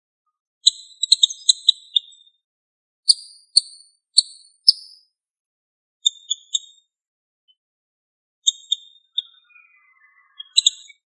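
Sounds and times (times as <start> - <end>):
bird chirping and twittering: 0.6 - 2.4, 3.1 - 5.0, 6.0 - 6.9, 8.4 - 11.0.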